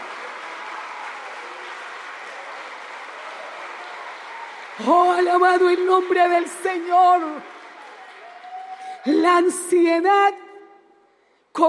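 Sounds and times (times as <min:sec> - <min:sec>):
audience applause: 0:00.0 - 0:09.1
speech: 0:04.8 - 0:07.5, 0:09.2 - 0:10.4.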